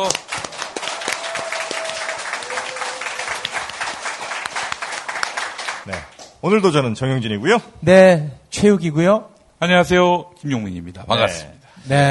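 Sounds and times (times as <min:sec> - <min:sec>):
speech: 0:00.0 - 0:00.3, 0:05.9 - 0:12.0
audience applause: 0:00.0 - 0:06.2.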